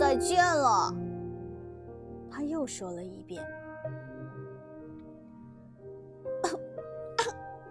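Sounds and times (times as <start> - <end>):
speech: 0.1 - 1.0, 2.4 - 3.6
voice imitating a cough: 6.5 - 7.4.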